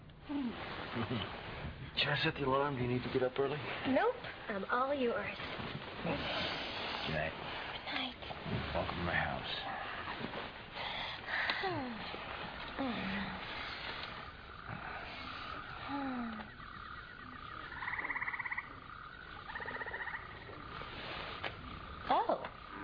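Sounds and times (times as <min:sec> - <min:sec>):
speech: 0:00.3 - 0:01.4, 0:02.0 - 0:07.6, 0:08.7 - 0:10.6, 0:11.6 - 0:13.0
frog sounds from a sleep sound machine: 0:04.7 - 0:22.8.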